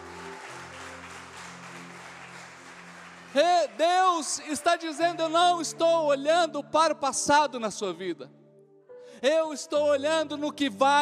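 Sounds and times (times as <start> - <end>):
sustained low keyboard tones: 0.0 - 4.1
audience applause: 0.0 - 5.2
speech: 3.3 - 8.4, 9.2 - 11.0.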